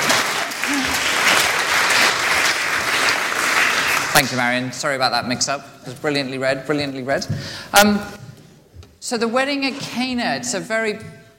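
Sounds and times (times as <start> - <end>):
applause: 0.0 - 4.5
speech: 4.2 - 8.2, 9.1 - 11.2.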